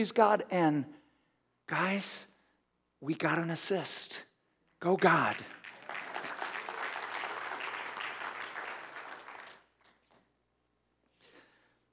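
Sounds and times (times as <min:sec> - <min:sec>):
speech: 0:00.0 - 0:01.0, 0:01.7 - 0:02.3, 0:03.0 - 0:05.6
audience clapping: 0:05.1 - 0:10.2.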